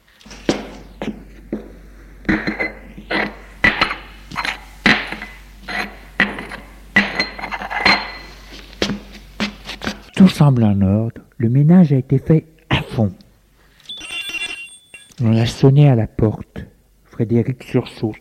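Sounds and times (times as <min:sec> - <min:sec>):
dishes and glasses clinking while setting a table: 0:02.3 - 0:08.4
speech: 0:10.3 - 0:13.2, 0:15.2 - 0:16.5, 0:17.2 - 0:18.1.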